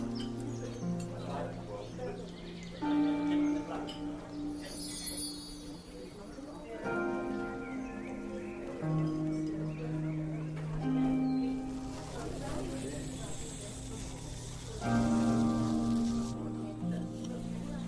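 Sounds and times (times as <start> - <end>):
low murmur of voices: 0.0 - 17.8
soft music of long held tones with a simple melody: 0.0 - 17.8
bright sparkling chimes: 3.7 - 6.8, 11.5 - 16.6.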